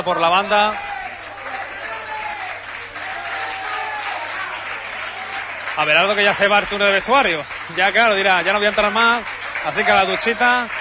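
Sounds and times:
speech: 0.0s - 0.9s, 5.8s - 10.8s
football fans applauding: 0.0s - 10.8s.

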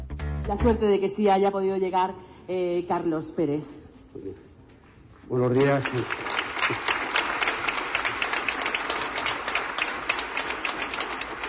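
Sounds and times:
speech: 0.5s - 4.5s, 5.3s - 6.9s
crowd clapping: 5.4s - 11.4s.

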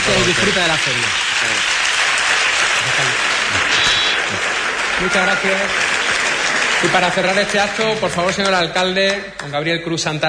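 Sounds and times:
audience applause: 0.0s - 9.7s
speech: 0.1s - 1.8s, 2.8s - 4.4s, 5.0s - 5.9s, 6.8s - 10.2s.

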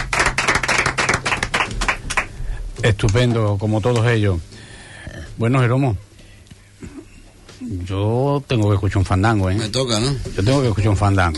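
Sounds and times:
audience applause: 0.0s - 2.3s
speech: 2.8s - 4.5s, 5.4s - 6.0s, 7.6s - 11.3s.

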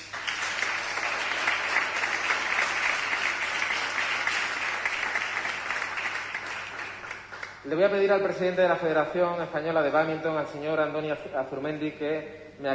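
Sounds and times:
audience applause: 0.0s - 7.6s
speech: 7.7s - 12.7s.

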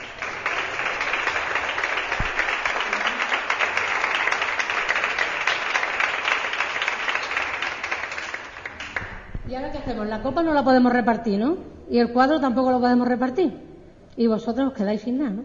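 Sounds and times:
applause: 0.0s - 9.4s
speech: 9.5s - 15.4s.

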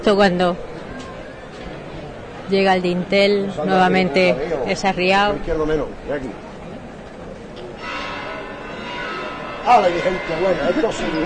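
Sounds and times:
speech: 0.0s - 0.7s, 2.5s - 6.4s, 9.6s - 11.2s
crowd murmur and voices: 0.0s - 11.2s
cathedral church bells ringing: 7.8s - 11.2s.

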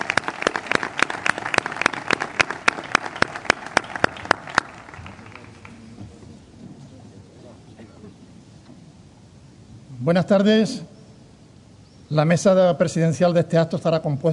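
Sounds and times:
audience applause: 0.0s - 6.2s
speech: 10.1s - 10.9s, 12.1s - 14.3s.

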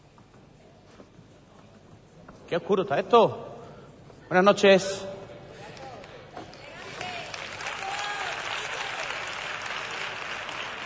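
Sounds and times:
speech: 2.5s - 3.5s, 4.3s - 5.1s
loud audience applause: 6.6s - 10.8s.

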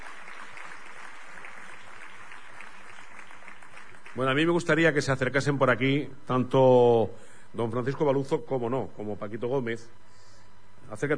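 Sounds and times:
audience applause: 0.0s - 4.6s
speech: 4.2s - 10.1s, 10.9s - 11.1s.

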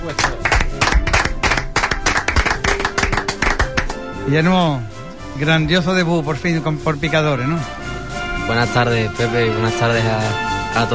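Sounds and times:
applause: 0.0s - 4.0s
speech: 0.1s - 0.5s, 4.3s - 7.8s, 8.5s - 10.9s.

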